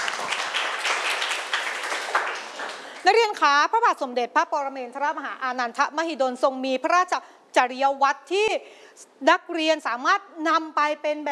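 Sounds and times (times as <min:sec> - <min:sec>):
students clapping for a classmate: 0:00.0 - 0:03.0
speech: 0:03.1 - 0:11.3.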